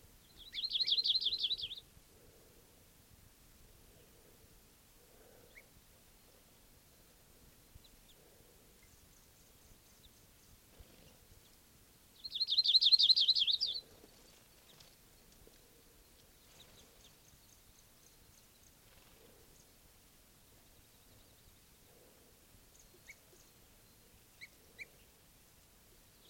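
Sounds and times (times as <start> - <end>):
bird alarm calls from a foraging flock: 0.4 - 1.8, 12.3 - 13.8.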